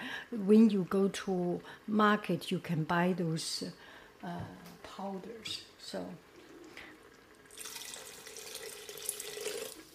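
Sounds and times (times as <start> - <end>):
speech: 0.3 - 6.3
water poured into a pot of cooking rice: 6.2 - 9.9.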